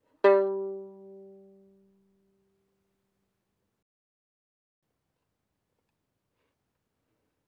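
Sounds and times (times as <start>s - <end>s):
violin pizzicato fortissimo on the G string: 0.2s - 1.8s.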